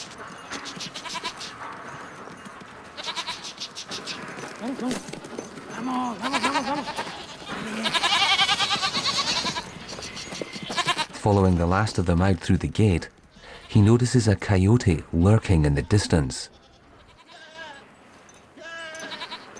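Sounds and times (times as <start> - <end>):
goats bleating while ushered out of a pen: 0.6 - 1.6, 3.0 - 3.6, 5.8 - 9.8, 10.4 - 11.2, 13.3 - 14.0, 15.5 - 17.9, 18.6 - 19.5
speech: 4.6 - 5.2, 5.8 - 8.0, 11.2 - 16.6.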